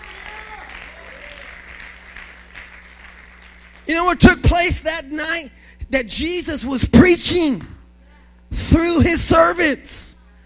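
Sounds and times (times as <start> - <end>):
audience clapping hands: 0.0 - 4.0
speech: 3.9 - 7.7, 8.7 - 10.2.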